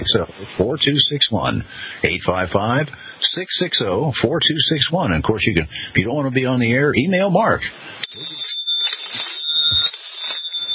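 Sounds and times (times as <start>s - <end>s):
speech: 0.0s - 8.4s
voices: 0.0s - 8.5s
telephone ringing: 8.0s - 10.7s.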